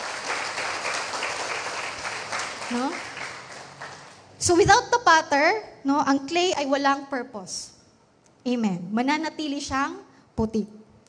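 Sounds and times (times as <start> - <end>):
church congregation in Sto. Tomas, Batangas clapping for the Lord: 0.0 - 4.3
speech: 2.7 - 3.1, 4.4 - 7.8, 8.4 - 10.8.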